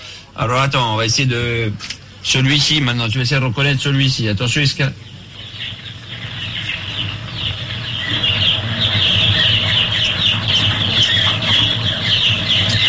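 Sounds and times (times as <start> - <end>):
speech: 0.4 - 5.1
chicks peeping in a henhouse: 4.7 - 12.8.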